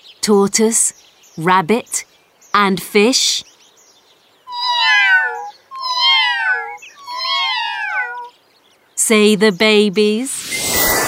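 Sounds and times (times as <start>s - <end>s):
speech: 0.2s - 3.5s, 9.1s - 10.4s
cat meowing: 4.5s - 8.3s.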